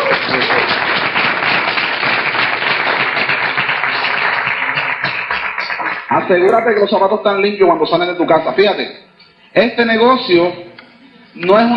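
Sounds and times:
audience applause: 0.0s - 6.1s
speech: 6.3s - 10.6s, 11.4s - 11.7s.

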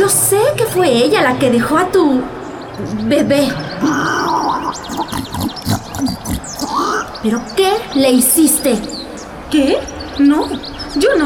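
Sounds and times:
speech: 0.1s - 5.2s, 7.2s - 11.2s
pig grunting: 3.8s - 7.2s.

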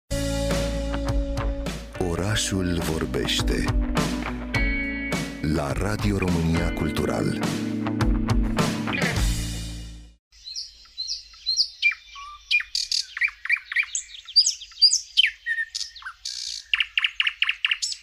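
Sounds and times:
short burst of music: 0.1s - 10.2s
speech: 2.4s - 4.2s, 5.4s - 7.7s
thrush nightingale song: 10.4s - 18.0s.

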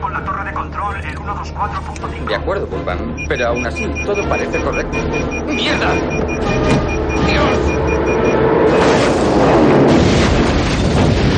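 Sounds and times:
speech: 0.6s - 8.6s
small plane crashing and exploding: 8.6s - 11.3s.

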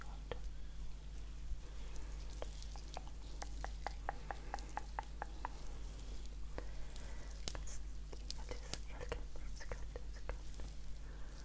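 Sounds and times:
steady low hum and hiss: 0.0s - 11.4s
face massage crackling taps and clicks: 2.3s - 5.7s, 6.5s - 10.8s.

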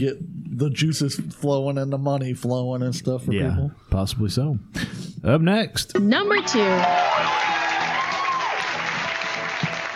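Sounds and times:
speech: 0.0s - 7.5s
long audience applause: 6.4s - 9.9s.

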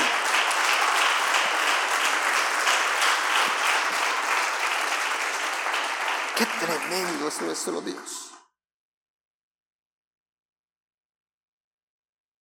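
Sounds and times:
audience applause: 0.0s - 8.4s
speech: 6.6s - 8.3s.

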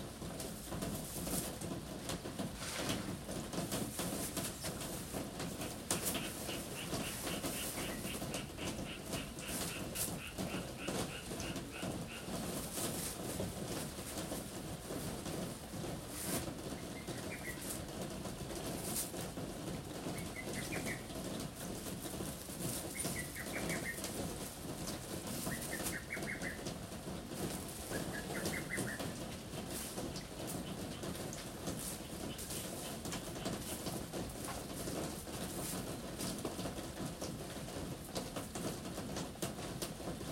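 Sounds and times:
rainy season rain drumming on a roof: 0.0s - 40.2s
bird calling: 5.6s - 12.6s, 16.8s - 17.8s, 20.1s - 21.1s, 22.8s - 24.5s, 25.4s - 26.8s, 27.6s - 29.4s.

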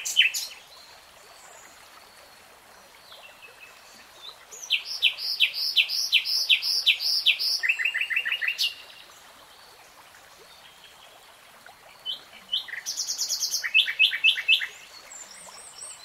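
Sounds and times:
nightingale song: 0.0s - 2.4s, 3.0s - 9.1s, 12.0s - 16.0s.

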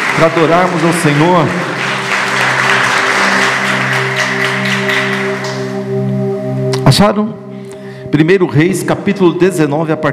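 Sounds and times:
audience applause: 0.0s - 5.8s
sustained low keyboard chord: 0.0s - 10.1s
speech: 0.2s - 1.7s, 6.9s - 7.4s, 8.1s - 10.1s.

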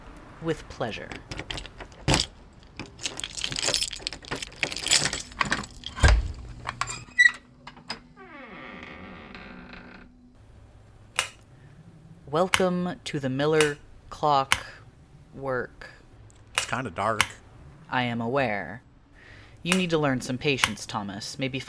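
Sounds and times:
speech: 0.4s - 1.7s, 12.3s - 14.7s, 15.4s - 15.9s, 16.7s - 18.9s, 19.6s - 21.6s
lock clunking: 1.0s - 10.6s
ring of keys jangling: 1.1s - 7.3s
heavy basement door creaking open: 1.1s - 10.4s.

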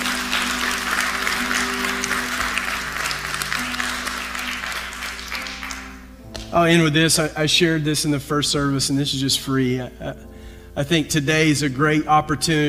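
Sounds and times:
audience clapping hands: 0.0s - 6.5s
speech: 6.5s - 12.6s.

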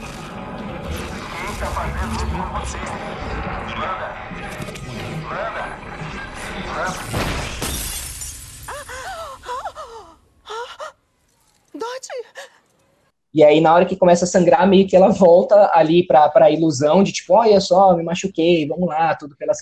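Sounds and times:
speech: 1.6s - 7.4s, 13.3s - 19.5s
glass shattering in a hand: 7.2s - 9.0s.

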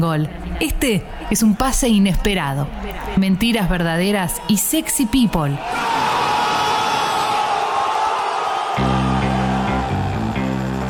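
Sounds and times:
speech: 0.0s - 6.1s
audience applause and cheering: 5.6s - 10.8s.

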